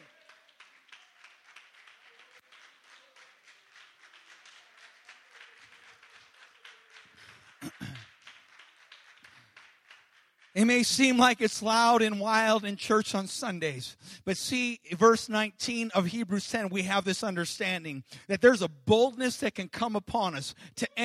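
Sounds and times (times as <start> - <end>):
audience clapping hands heard from a distance: 0.0 - 12.1
speech: 10.6 - 21.0.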